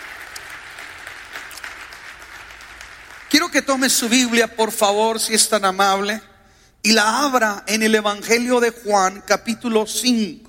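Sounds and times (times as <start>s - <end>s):
audience clapping: 0.0s - 4.5s
speech: 3.4s - 10.4s.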